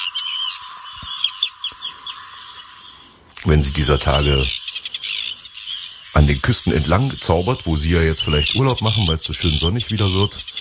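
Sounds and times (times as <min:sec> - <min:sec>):
Arctic tern harsh cries: 0:00.0 - 0:10.5
speech: 0:03.4 - 0:04.6, 0:06.2 - 0:10.5.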